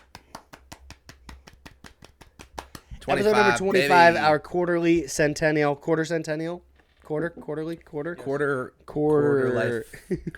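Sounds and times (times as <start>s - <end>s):
soft golf clap: 0.0s - 3.0s
speech: 3.1s - 10.3s.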